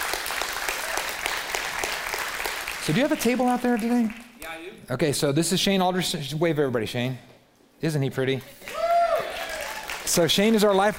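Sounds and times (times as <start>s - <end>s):
audience applause: 0.0s - 4.3s, 8.6s - 10.9s
speech: 2.9s - 8.8s, 10.1s - 10.9s.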